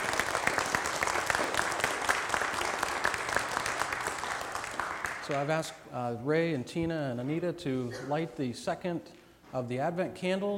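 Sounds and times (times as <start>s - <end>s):
audience applause: 0.0s - 5.5s
speech: 5.3s - 10.5s.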